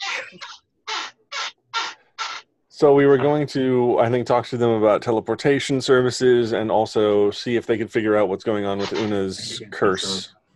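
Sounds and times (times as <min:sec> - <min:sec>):
squeaky chair: 0:00.0 - 0:02.4, 0:08.8 - 0:09.2
speech: 0:00.2 - 0:00.7, 0:02.8 - 0:10.5.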